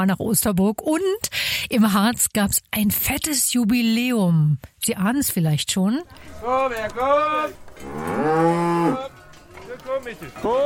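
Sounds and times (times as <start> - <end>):
speech: 0.0 - 9.1, 9.8 - 10.6
Harzer Rotes Höhenvieh cattle mooing: 6.4 - 9.4.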